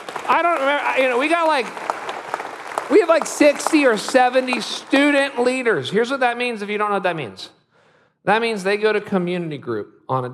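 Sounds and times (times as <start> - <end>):
round of applause: 0.0 - 6.0
speech: 0.3 - 1.9, 2.9 - 7.6, 8.2 - 10.3.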